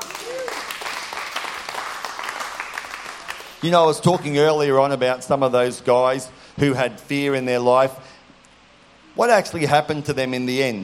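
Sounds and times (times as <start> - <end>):
audience clapping: 0.0 - 4.3
speech: 3.6 - 8.1, 9.2 - 10.8.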